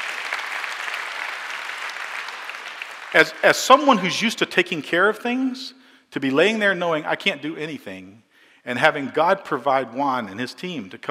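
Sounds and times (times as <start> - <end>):
audience applause: 0.0 - 3.9
speech: 3.1 - 11.1.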